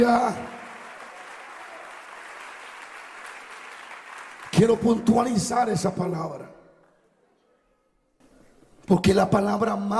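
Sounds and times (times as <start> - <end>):
speech: 0.0 - 0.6, 4.6 - 6.6, 8.9 - 9.9
audience applause: 0.0 - 5.4.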